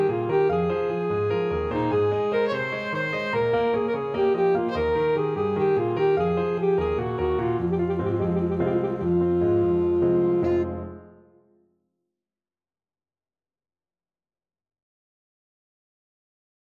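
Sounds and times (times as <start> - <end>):
alto saxophone: 0.0 - 10.9.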